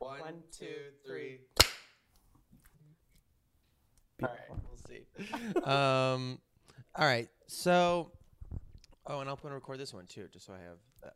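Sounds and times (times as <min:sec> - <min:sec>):
speech: 0:00.3 - 0:01.1, 0:04.2 - 0:06.4, 0:07.0 - 0:08.2, 0:09.1 - 0:11.1
hand clap to sync recordings: 0:01.6 - 0:02.0.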